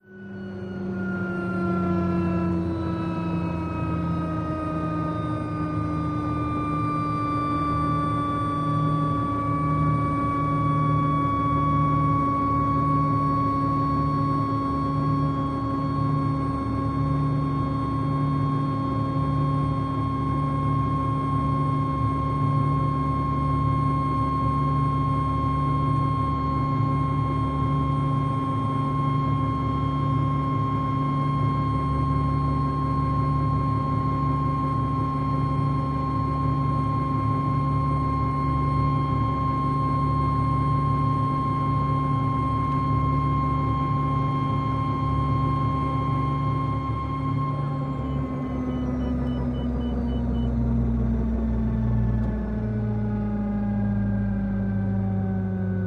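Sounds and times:
OH6 Loach little bird helicopter interior: 0.2s - 55.8s.

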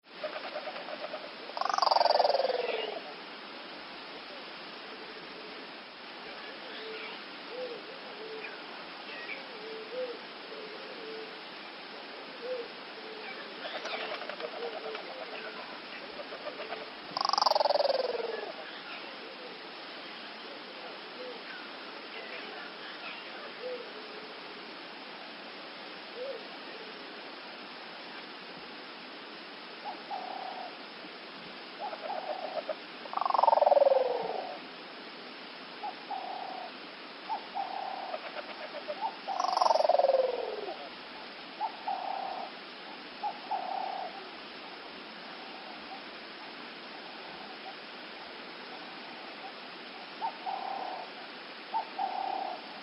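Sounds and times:
African Cape turtle dove and mourning dove cooing: 0.1s - 3.2s, 6.3s - 19.7s, 20.4s - 24.3s, 26.1s - 27.0s, 29.8s - 30.8s, 31.8s - 34.6s, 35.8s - 42.6s, 43.2s - 44.4s, 48.7s - 52.8s.

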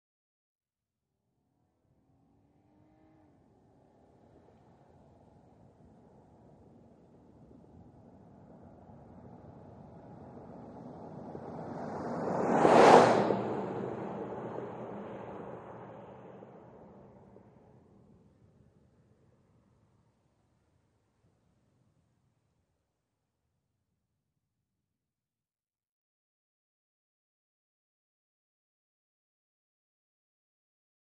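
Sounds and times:
SUV passing by at 55 mph: 1.9s - 7.8s, 8.8s - 18.2s.

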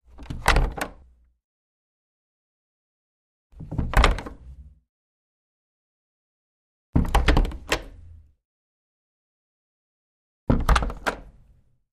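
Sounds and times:
wooden door opening and closing: 0.1s - 1.0s, 3.6s - 4.4s, 7.0s - 8.0s, 10.5s - 11.4s.

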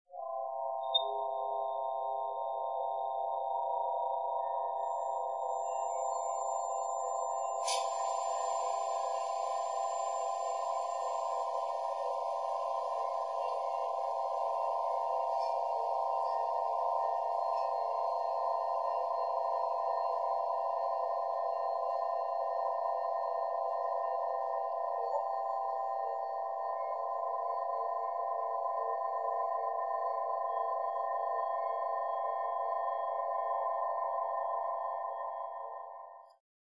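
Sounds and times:
spaceship interior ambience: 0.1s - 36.4s
beeps: 0.6s - 17.7s.

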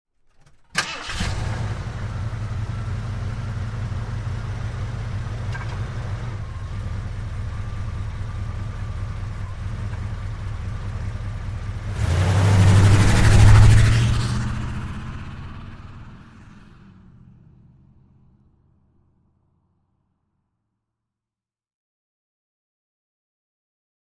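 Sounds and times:
Jeep Wagoneer engine starting and idling: 0.2s - 19.9s
Jeep Wagoneer driving away fast: 0.8s - 18.4s.

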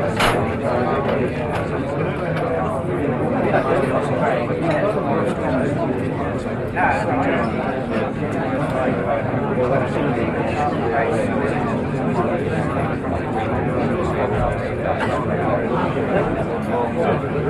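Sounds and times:
busy bar pub chatter: 0.0s - 17.4s.

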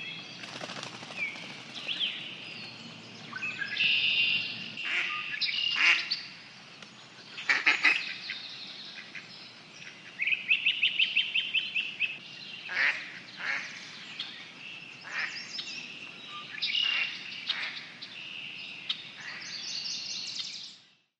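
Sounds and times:
rusty blackbird calling in a swamp: 0.0s - 6.4s, 7.1s - 20.8s
wood ducks calling in a swamp: 3.3s - 6.4s, 7.2s - 11.1s, 12.7s - 18.0s
mallards quacking in a swamp: 3.9s - 6.2s, 7.4s - 8.4s, 12.7s - 13.8s, 16.8s - 17.9s.

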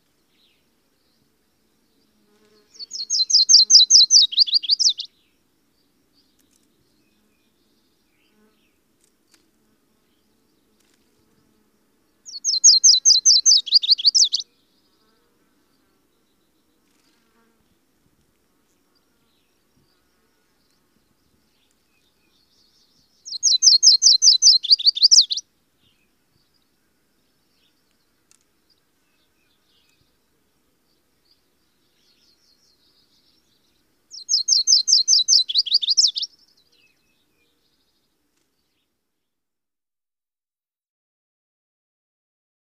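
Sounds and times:
Virginia's warbler calling: 2.7s - 5.1s, 12.3s - 14.4s, 22.3s - 25.4s, 31.9s - 37.2s.

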